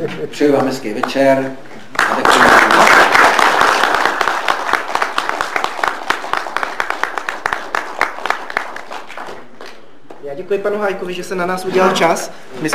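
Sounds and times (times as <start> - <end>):
speech: 0.0 - 3.2, 10.4 - 12.7
audience applause at the end of a talk: 2.0 - 9.8.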